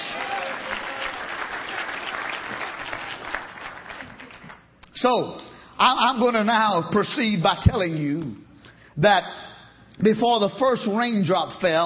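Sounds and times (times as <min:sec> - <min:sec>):
audience clapping hands in praise: 0:00.0 - 0:04.7
speech: 0:05.0 - 0:08.4, 0:09.0 - 0:09.4, 0:10.0 - 0:11.8.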